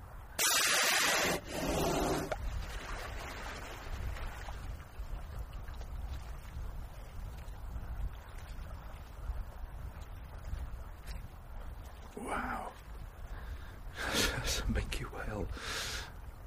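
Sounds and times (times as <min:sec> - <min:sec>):
low rumble of wind and water: 0:00.0 - 0:16.4
whale surfacing and exhaling: 0:01.2 - 0:02.4.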